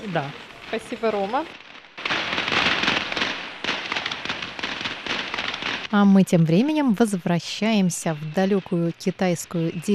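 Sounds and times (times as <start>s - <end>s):
speech: 0.0s - 1.6s, 5.9s - 9.9s
Chinese firecrackers exploding: 0.0s - 6.0s.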